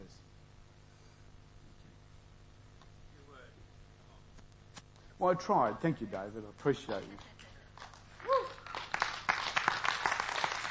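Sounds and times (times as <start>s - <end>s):
speech: 5.2s - 7.3s
audience applause: 7.0s - 10.6s.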